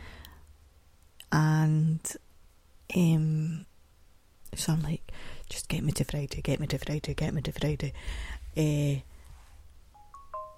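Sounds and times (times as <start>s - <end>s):
speech: 1.7s - 2.3s, 2.9s - 3.7s, 4.5s - 5.0s, 5.7s - 9.1s
faint beeping tones: 10.0s - 10.5s
telephone ringing: 10.0s - 10.5s.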